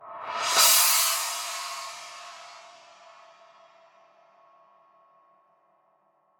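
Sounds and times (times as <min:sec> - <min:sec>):
cymbal roll: 0:00.2 - 0:03.6.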